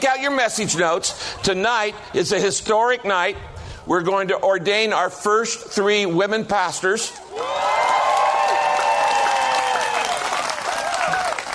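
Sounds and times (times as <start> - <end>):
speech: 0.0 - 7.8
whoops and shouted voices: 7.1 - 11.5
crowd applauding: 7.3 - 11.5.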